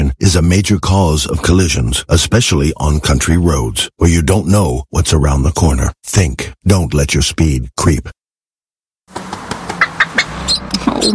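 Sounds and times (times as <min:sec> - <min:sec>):
speech: 0:00.3 - 0:08.2
bird- and fowl-like calls in a roadside litter advert: 0:09.4 - 0:11.1.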